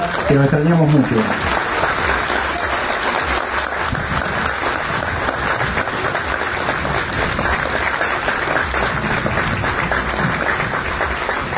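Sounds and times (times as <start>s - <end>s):
audience applause: 0.0s - 11.5s
speech: 0.3s - 1.6s.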